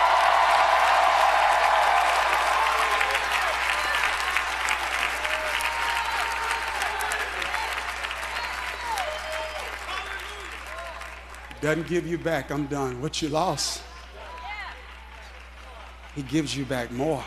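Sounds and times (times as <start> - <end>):
worshippers shouting and whooping: 0.0 - 4.5, 5.1 - 11.0
church congregation clapping: 0.0 - 17.2
speech: 11.6 - 13.9, 16.2 - 17.2.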